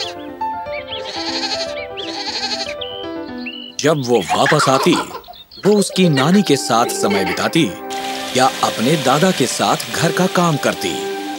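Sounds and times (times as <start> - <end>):
music: 0.0 - 11.3
goats bleating: 1.0 - 2.8, 4.2 - 5.3, 6.1 - 7.5
speech: 3.8 - 7.8, 8.4 - 11.1
laughter: 4.2 - 7.8.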